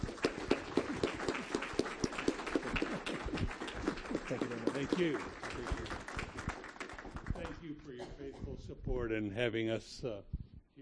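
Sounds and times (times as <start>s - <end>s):
round of applause: 0.0s - 8.0s
speech: 4.3s - 5.9s, 7.8s - 10.4s.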